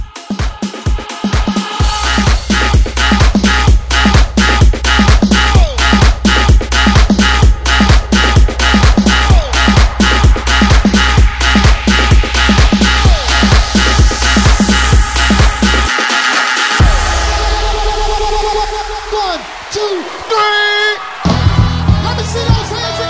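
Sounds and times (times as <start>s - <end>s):
old school transition sound: 0.2s - 22.9s.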